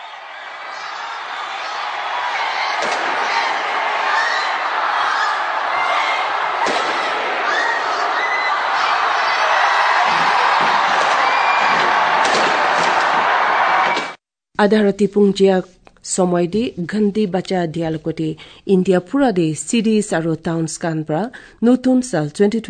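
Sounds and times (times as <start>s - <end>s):
crowd cheering and whooping: 0.0s - 14.2s
fireworks at the New Year 2025 display at the Sky Tower: 2.7s - 4.6s, 6.6s - 8.0s, 9.9s - 14.2s
speech: 14.6s - 22.6s.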